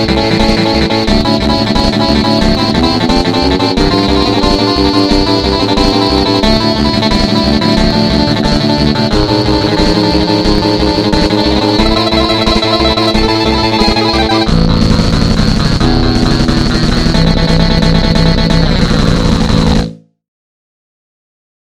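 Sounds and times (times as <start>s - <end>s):
guitar note attack: 0.0s - 20.0s.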